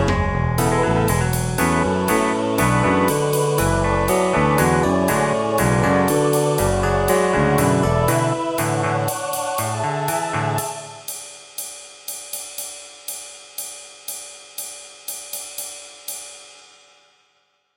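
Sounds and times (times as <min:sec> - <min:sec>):
midi music: 0:00.0 - 0:11.1.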